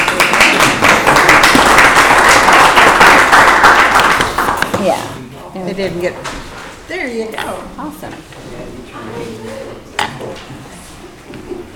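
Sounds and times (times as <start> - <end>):
audience applause: 0.0 - 4.6
speech: 5.7 - 9.4.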